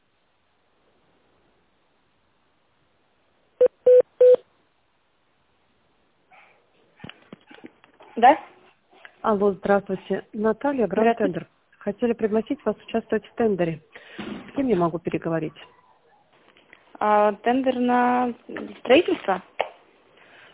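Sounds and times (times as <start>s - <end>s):
phone keypad beeps: 3.6s - 4.4s
speech: 8.2s - 8.5s, 9.3s - 14.0s, 14.6s - 15.8s, 17.0s - 19.5s.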